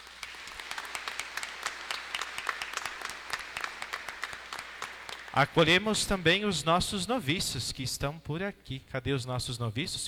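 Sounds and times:
crowd applauding: 0.0 - 6.2
speech: 5.4 - 10.0.

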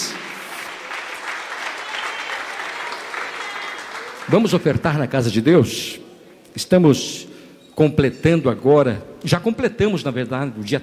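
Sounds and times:
audience applauding: 0.0 - 5.0
speech: 4.3 - 10.8.

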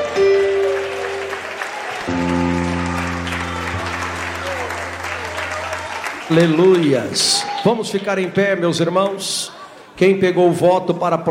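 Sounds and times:
audience clapping hands: 0.0 - 8.4
speech: 6.3 - 11.2.

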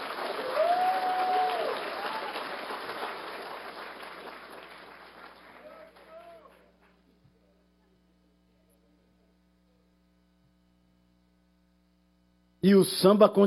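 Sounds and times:
high cheer: 0.0 - 4.4, 5.4 - 6.7
audience clapping: 0.0 - 7.1
speech: 12.6 - 13.4.

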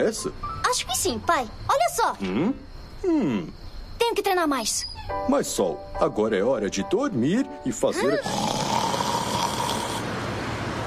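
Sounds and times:
speech: 0.0 - 8.6
cartoon character snoring at bedtime: 8.2 - 10.1.

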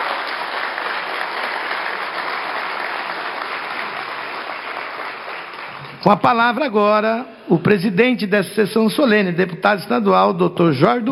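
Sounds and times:
audience applause: 0.0 - 6.1
speech: 6.0 - 11.1.

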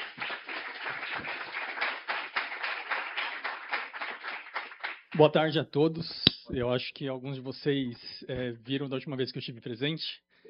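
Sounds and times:
round of applause: 0.0 - 5.2
speech: 5.1 - 10.3.

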